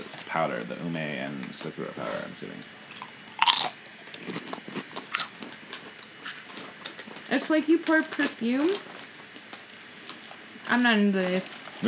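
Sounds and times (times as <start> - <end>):
speech: 0.3 - 2.8, 7.3 - 8.9, 10.7 - 11.8
crunching potato chips: 2.9 - 7.0.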